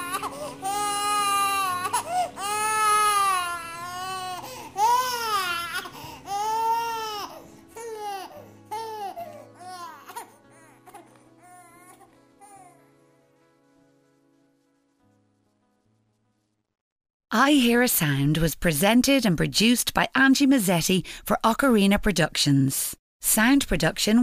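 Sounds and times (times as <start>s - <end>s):
little babies crying: 0.0s - 12.0s
speech: 17.3s - 24.2s.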